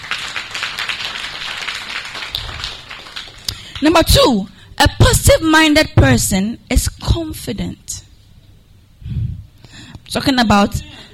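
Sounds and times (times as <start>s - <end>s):
room full of people clapping: 0.0s - 4.0s
speech: 3.8s - 8.0s, 10.1s - 10.9s.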